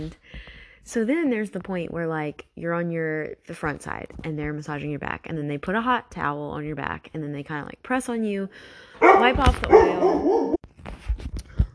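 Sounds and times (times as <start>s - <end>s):
speech: 0.0s - 10.6s
pet dog barking and whining: 9.0s - 10.6s.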